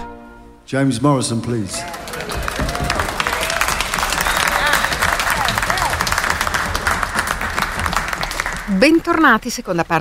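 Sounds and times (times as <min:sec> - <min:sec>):
speech: 0:00.7 - 0:02.1, 0:08.7 - 0:09.9
audience applause: 0:01.4 - 0:09.9
faint cheers: 0:01.7 - 0:06.6.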